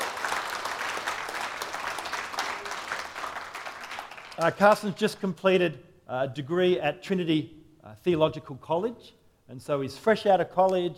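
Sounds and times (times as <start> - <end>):
audience round of applause: 0.0 - 4.7
speech: 4.4 - 10.9.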